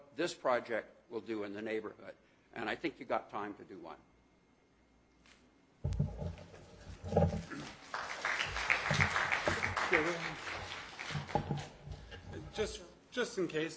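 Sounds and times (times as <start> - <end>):
speech: 0.2 - 4.1, 9.9 - 10.3, 12.6 - 13.7
audience applause: 7.2 - 12.6.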